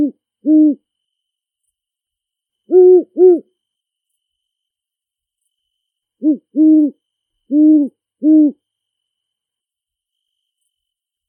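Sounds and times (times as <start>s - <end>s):
great horned owl hooting in a big forest: 0.0s - 0.8s, 2.7s - 3.5s, 6.2s - 8.6s.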